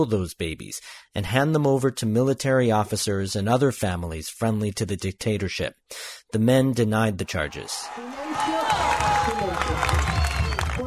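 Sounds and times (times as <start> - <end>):
speech: 0.0 - 10.0
relatives cheering in a packed courtroom: 7.2 - 10.8
relatives applauding in a packed courtroom: 7.6 - 10.8.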